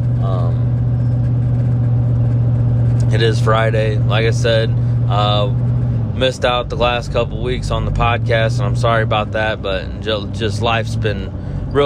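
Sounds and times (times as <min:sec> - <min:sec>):
car engine hum: 0:00.0 - 0:11.8
car road noise while driving: 0:00.0 - 0:11.8
speech: 0:03.2 - 0:11.8.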